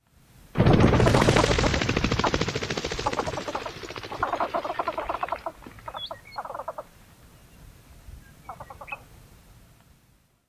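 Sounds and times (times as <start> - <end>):
bird calls in flight: 1.2 - 6.9, 8.4 - 9.1.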